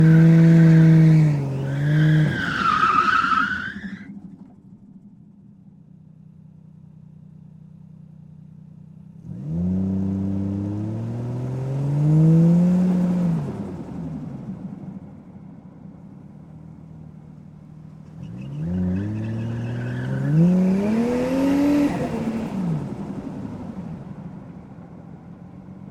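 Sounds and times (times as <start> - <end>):
Toyota Chaser Mark 2 engine: 0.0 - 3.8, 9.2 - 14.0, 18.0 - 23.8
Toyota Chaser Mark 2 tyres skidding: 0.0 - 5.1, 17.8 - 25.8.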